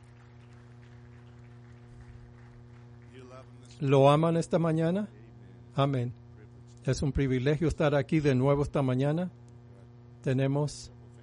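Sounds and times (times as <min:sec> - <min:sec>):
audience applause: 0:00.0 - 0:03.6
speech: 0:03.2 - 0:05.2, 0:05.8 - 0:06.2, 0:06.8 - 0:09.4, 0:10.2 - 0:11.0.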